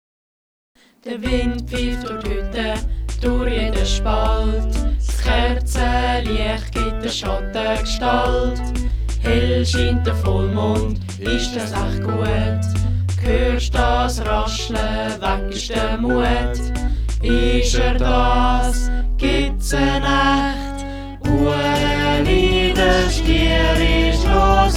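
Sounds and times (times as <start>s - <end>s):
vocals: 0.8s - 24.7s.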